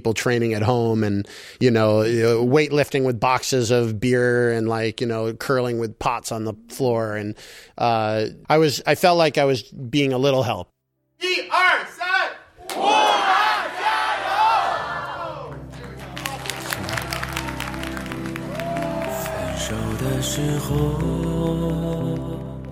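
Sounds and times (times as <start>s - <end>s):
speech: 0.0s - 11.9s, 20.2s - 22.5s
crowd chanting a slogan: 12.6s - 17.6s, 18.5s - 21.0s.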